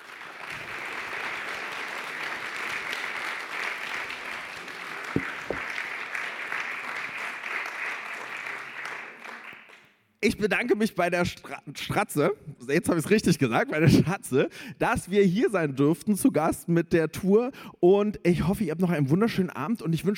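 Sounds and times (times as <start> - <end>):
audience applause: 0.0 - 9.8
speech: 10.2 - 20.1.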